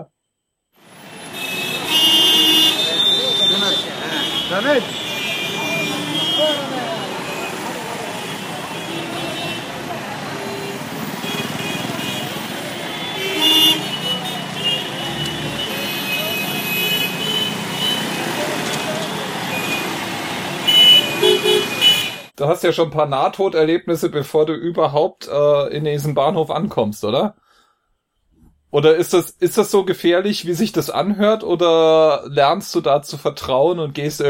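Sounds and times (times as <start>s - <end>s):
busy city street traffic engines in Mumbai: 0.8s - 22.4s
car horns honking: 0.9s - 22.3s
speech: 4.5s - 5.0s, 22.4s - 27.4s, 28.7s - 34.2s.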